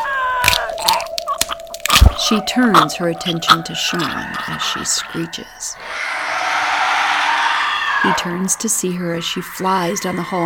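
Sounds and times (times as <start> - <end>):
skull cracking against a wall: 0.0 - 4.6
high droning tone: 2.2 - 10.4
speech: 2.3 - 6.1, 8.0 - 10.4.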